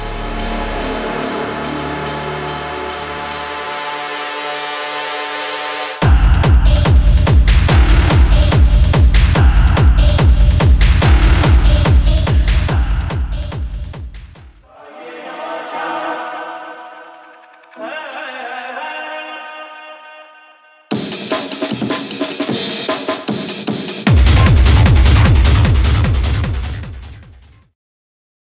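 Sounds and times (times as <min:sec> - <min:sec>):
hard techno music: 0:00.0 - 0:14.6, 0:20.9 - 0:27.6.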